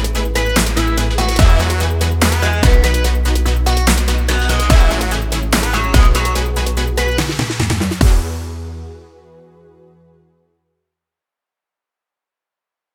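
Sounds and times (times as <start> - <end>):
future bass music: 0.0 - 9.3.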